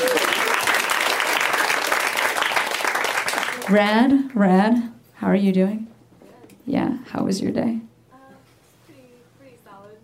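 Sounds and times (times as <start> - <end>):
audience applause: 0.0 - 3.9
speech: 3.7 - 5.9, 6.7 - 7.8.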